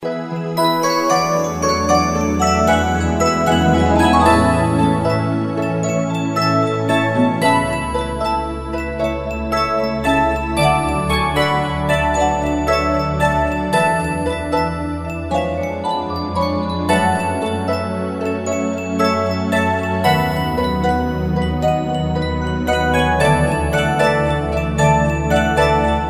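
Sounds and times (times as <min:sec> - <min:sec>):
music box: 0:00.0 - 0:26.0.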